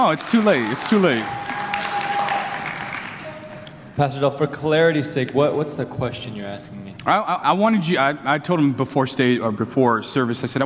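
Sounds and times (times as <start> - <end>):
speech: 0.0 - 1.5, 4.0 - 10.6
audience clapping: 0.0 - 3.8.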